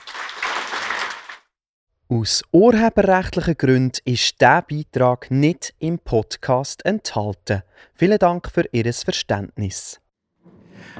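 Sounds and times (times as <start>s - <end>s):
crowd applause: 0.0s - 1.4s
speech: 2.1s - 10.0s.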